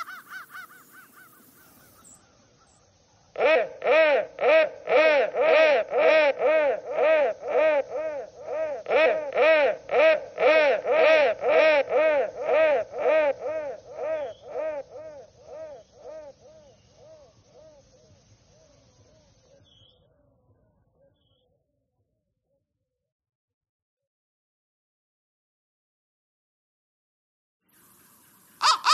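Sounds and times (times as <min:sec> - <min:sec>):
crow calling: 0:00.0 - 0:02.8, 0:03.4 - 0:18.0, 0:28.6 - 0:28.9.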